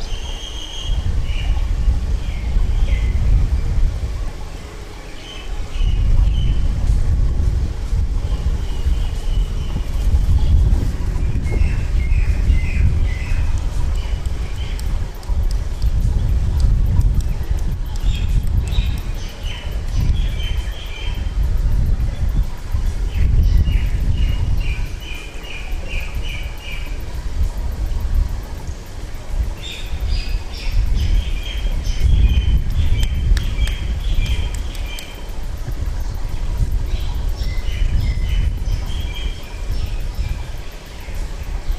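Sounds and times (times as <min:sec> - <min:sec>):
lotus pond soundscape: 0:00.0 - 0:41.7.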